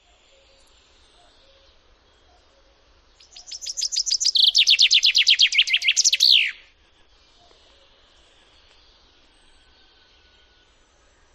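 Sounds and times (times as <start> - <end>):
common chaffinch singing: 3.2 - 6.7.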